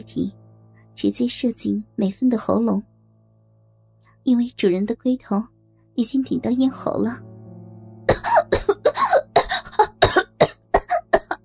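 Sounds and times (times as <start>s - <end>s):
speech: 0.0s - 0.4s, 1.0s - 2.9s, 4.2s - 7.3s
woman coughing violently: 8.1s - 11.4s.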